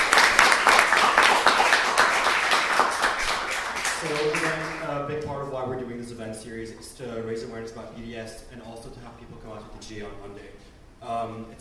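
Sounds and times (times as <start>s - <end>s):
round of applause at a McGill student event: 0.0s - 5.0s
speech: 5.9s - 11.5s.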